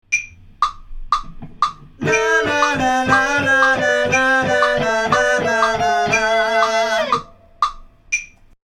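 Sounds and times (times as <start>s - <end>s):
vocals: 2.0s - 7.8s.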